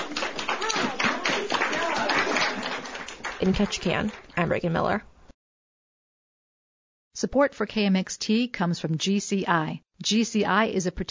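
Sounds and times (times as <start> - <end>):
audience applause after student plays: 0.0 - 4.4
whoops and shouting voices: 0.6 - 2.4
speech: 3.4 - 5.1, 7.2 - 11.1.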